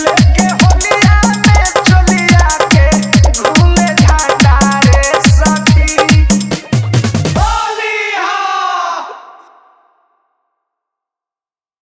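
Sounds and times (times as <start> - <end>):
Bhojpuri Holi DJ song: 0.0 - 9.1.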